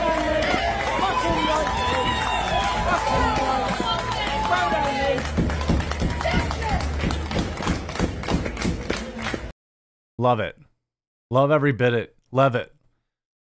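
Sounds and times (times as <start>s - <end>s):
crowd cheering and shouting: 0.0s - 9.5s
crowd rhythmic clapping: 0.0s - 9.5s
speech: 10.2s - 10.7s, 11.3s - 12.8s.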